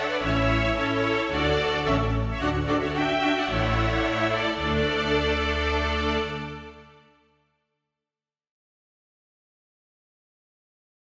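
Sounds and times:
march for string quintet: 0:00.0 - 0:07.1.

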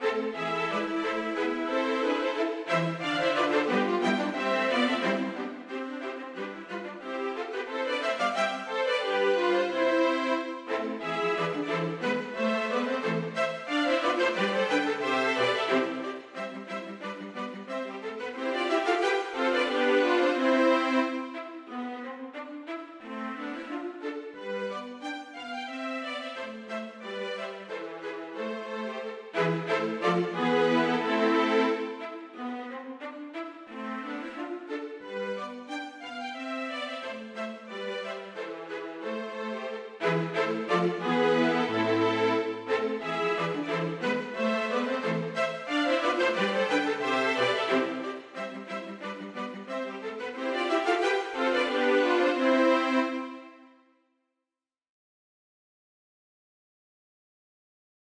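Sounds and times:
string quartet playing gavotte and bourrée: 0:00.0 - 0:53.8.

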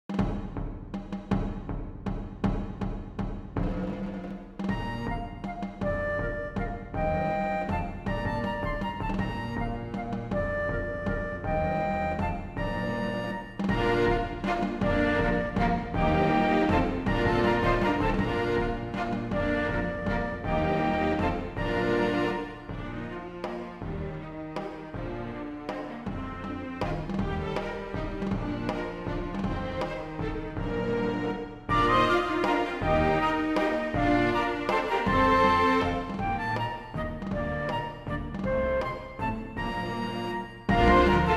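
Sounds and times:
drums playing a minuet: 0:00.0 - 0:41.3
strings playing a minuet: 0:03.6 - 0:41.3
flutes playing a minuet: 0:04.2 - 0:41.3.

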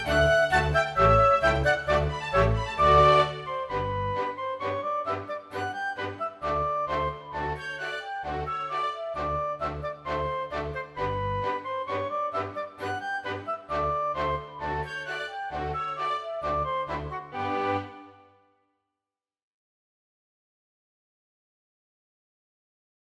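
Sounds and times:
galop dance music: 0:00.0 - 0:17.8.

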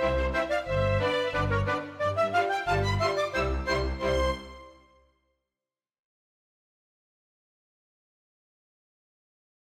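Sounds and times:
polka music: 0:00.0 - 0:05.0.

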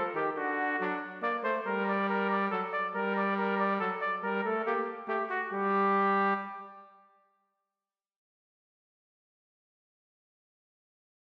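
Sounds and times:
baritone horn playing a minuet: 0:00.0 - 0:06.9
trumpet playing a minuet: 0:00.0 - 0:07.2.

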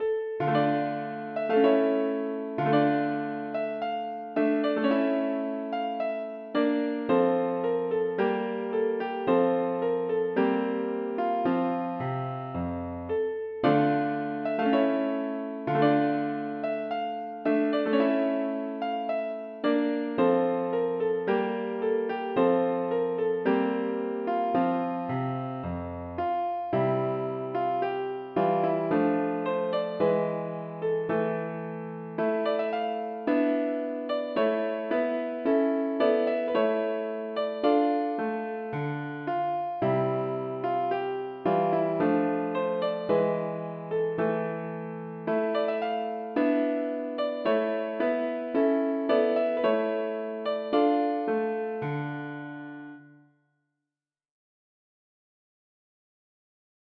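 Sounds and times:
galliard for piano: 0:00.0 - 0:53.2.

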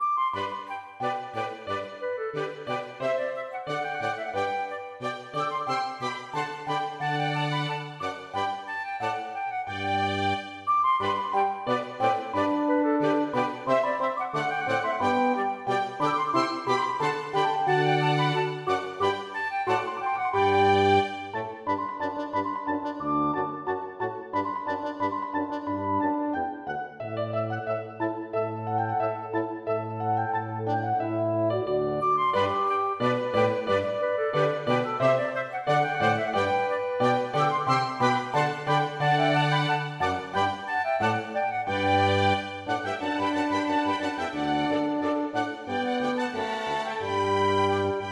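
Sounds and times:
march for flute and small ensemble: 0:00.0 - 0:48.1.

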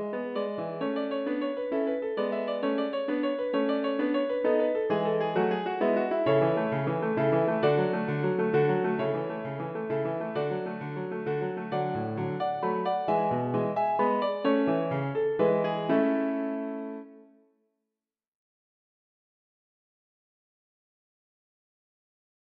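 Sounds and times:
piano minuet: 0:00.0 - 0:17.4.

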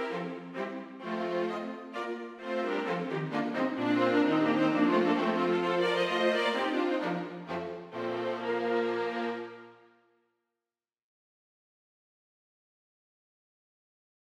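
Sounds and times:
string quartet playing a minuet: 0:00.0 - 0:09.8.

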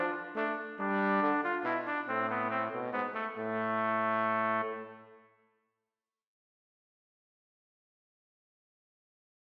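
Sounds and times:
baritone horn playing a minuet: 0:00.0 - 0:05.3
trumpet playing a minuet: 0:00.0 - 0:05.4.

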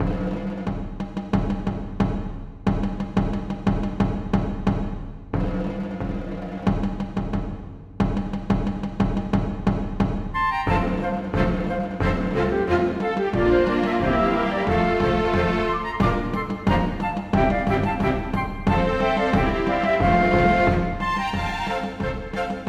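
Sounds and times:
march for flutes, strings and drums: 0:00.0 - 0:22.6.

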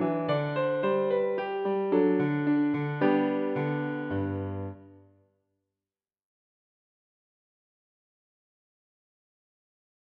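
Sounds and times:
allemande piano piece: 0:00.0 - 0:05.2.

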